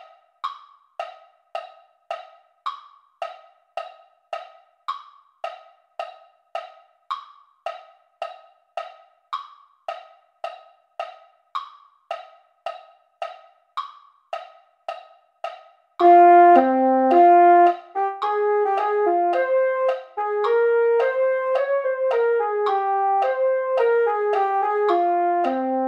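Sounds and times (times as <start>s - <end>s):
mellophone playing Christmas classics medley: 16.0s - 25.8s.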